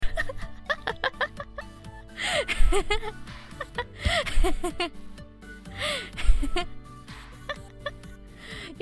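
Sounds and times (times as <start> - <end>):
person laughing: 0.0 - 5.0, 6.2 - 6.7.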